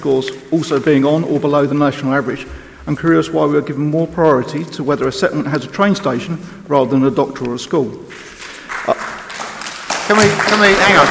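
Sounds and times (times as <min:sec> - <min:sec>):
speech: 0:00.0 - 0:08.4, 0:10.1 - 0:11.1
public gallery audience clapping: 0:08.1 - 0:11.1.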